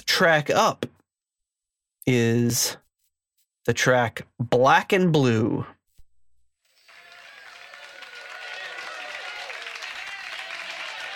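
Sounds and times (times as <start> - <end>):
speech: 0.0 - 0.9, 2.0 - 2.8, 3.6 - 5.8
people in the studio clapping at the start of a rock track: 6.7 - 11.1.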